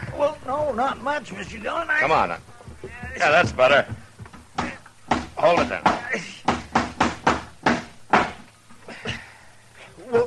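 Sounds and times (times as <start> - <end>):
speech: 0.2 - 2.5, 3.2 - 4.0, 5.4 - 6.3
hammer pounding a nail into a wooden door: 4.6 - 8.5.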